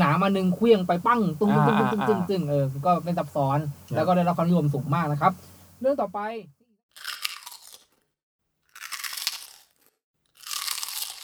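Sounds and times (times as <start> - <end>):
speech: 0.2 - 6.6
crunching on Party Crispy Pie fried crispy corn snack: 6.9 - 8.0, 8.7 - 11.2.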